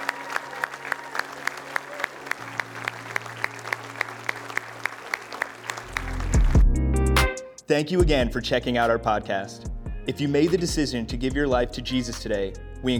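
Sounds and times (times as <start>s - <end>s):
audience clapping in steady unison: 0.0s - 6.7s
speech: 7.8s - 12.9s.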